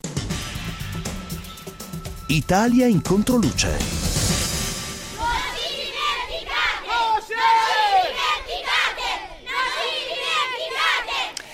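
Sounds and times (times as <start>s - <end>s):
speech: 2.3s - 4.1s
crowd of children shouting at a protest: 5.1s - 11.5s.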